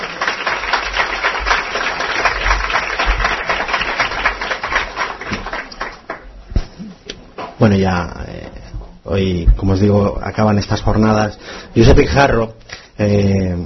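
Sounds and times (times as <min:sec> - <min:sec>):
crowd applause: 0:00.0 - 0:06.4
speech: 0:07.6 - 0:08.2, 0:09.1 - 0:13.6.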